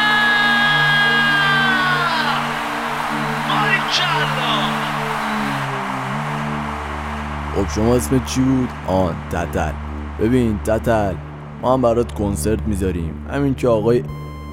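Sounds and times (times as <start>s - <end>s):
crowd screaming and shrieking: 0.0s - 11.6s
low musical tones: 0.0s - 14.5s
speech: 7.6s - 14.2s.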